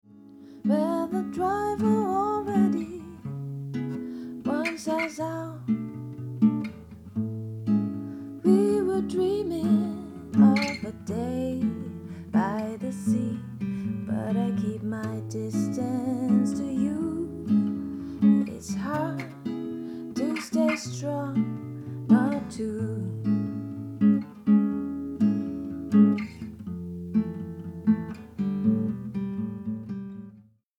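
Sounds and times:
guitar: 0.0 - 30.6
person singing: 0.7 - 3.2, 4.5 - 5.6, 8.4 - 19.4, 20.1 - 23.2.

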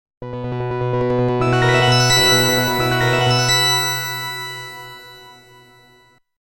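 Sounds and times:
harp sound on Novation PEAK synthesizer: 1.4 - 6.0.

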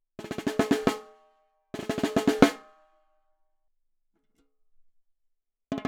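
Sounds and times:
snare drum recorded with M-Audio Nova microphone: 0.2 - 1.1, 1.8 - 2.7.

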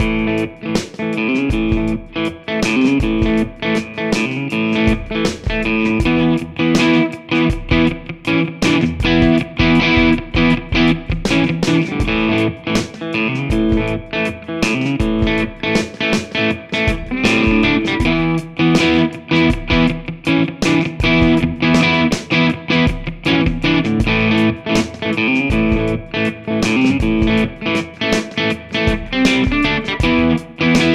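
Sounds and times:
Fender American Original 60 Jazzmaster bridge pickup: 0.0 - 30.9.

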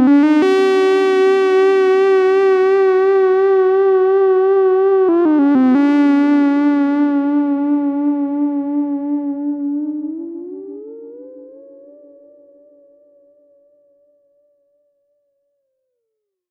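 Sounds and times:
PPG 1002 filter FM synth sound: 0.0 - 12.1.

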